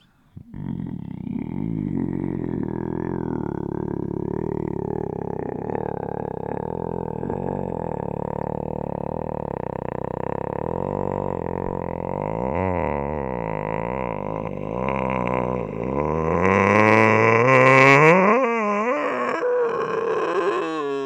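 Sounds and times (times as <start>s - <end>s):
guttural vocals: 0.0s - 21.0s.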